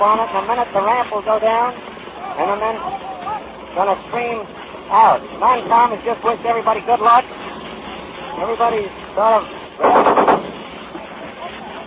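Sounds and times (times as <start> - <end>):
speech: 0.0 - 3.1, 3.7 - 7.4, 8.4 - 10.1
machine gun firing: 9.8 - 10.6.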